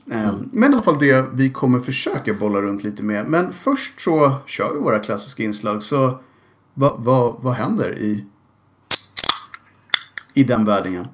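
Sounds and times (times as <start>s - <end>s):
speech: 0.1s - 8.3s, 10.4s - 11.1s
beer can being opened: 8.9s - 10.3s.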